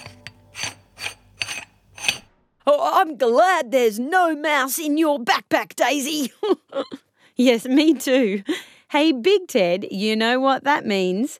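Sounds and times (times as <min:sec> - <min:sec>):
water bottle lid squeaking: 0:00.0 - 0:02.3
speech: 0:02.7 - 0:11.3.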